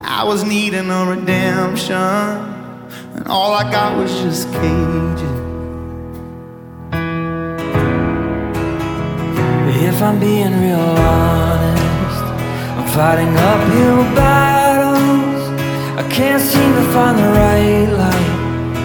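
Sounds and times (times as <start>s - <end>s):
live acoustic music: 0.0s - 18.8s.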